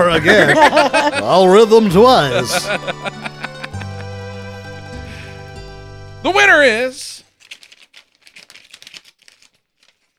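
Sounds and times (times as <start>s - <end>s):
speech: 0.0s - 3.3s, 6.2s - 7.2s
laughter: 0.0s - 4.7s
envelope being opened during an awards ceremony: 7.3s - 10.1s.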